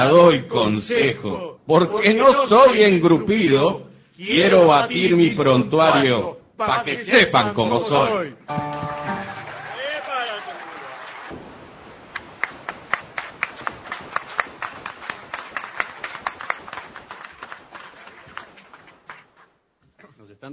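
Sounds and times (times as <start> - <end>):
speech: 0.0 - 8.7
tonal musical passage: 8.5 - 9.8
audience applause: 8.5 - 11.4, 12.1 - 19.5.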